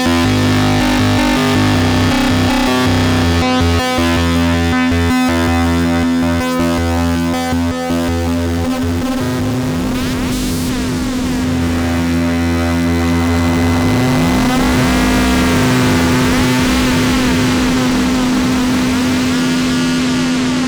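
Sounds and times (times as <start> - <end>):
MOOG MAVIS synthesizer fuzzy tone with stereo echo: 0.0 - 20.6.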